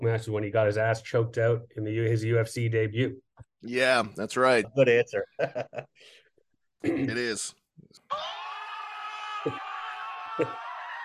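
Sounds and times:
speech: 0.0s - 6.2s, 6.8s - 8.4s, 9.4s - 9.6s, 10.4s - 10.6s
laughter: 5.0s - 5.9s
crowd cheering sound effect: 8.1s - 11.0s.

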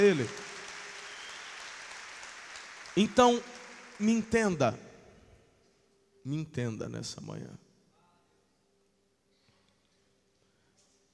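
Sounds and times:
speech: 0.0s - 0.5s, 3.0s - 4.9s, 6.2s - 7.6s
audience applauding: 0.0s - 4.8s.

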